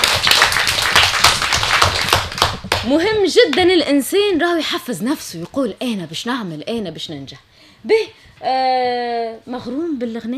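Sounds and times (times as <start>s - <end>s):
audience applause for a young singer's performance: 0.0s - 2.8s
speech: 2.8s - 10.3s.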